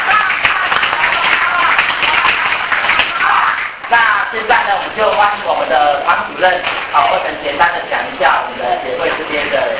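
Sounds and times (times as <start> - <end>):
group of students clapping a rhythmic cheer: 0.0 - 5.5, 6.1 - 7.7
speech: 3.9 - 9.7.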